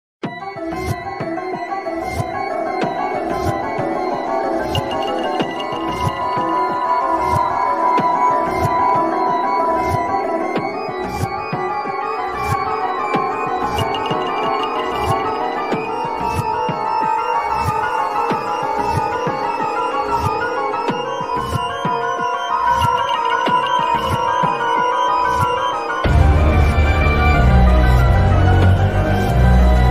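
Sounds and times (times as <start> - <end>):
ghost house music: 0.3 - 29.8.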